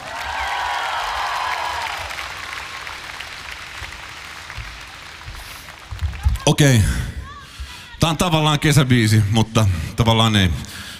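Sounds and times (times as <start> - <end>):
audience applause for band member: 0.0 - 7.4
speech: 6.5 - 7.0, 8.0 - 10.8.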